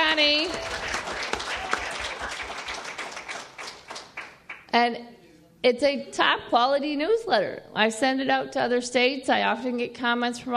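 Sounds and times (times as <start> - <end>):
audience applause at an organization's meeting honoring a newsletter editor: 0.0 - 4.7
speech: 4.7 - 10.5.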